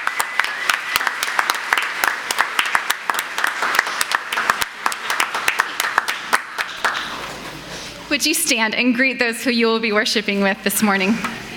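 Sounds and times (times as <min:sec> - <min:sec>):
crowd applauding: 0:00.0 - 0:07.6
speech: 0:08.2 - 0:11.4.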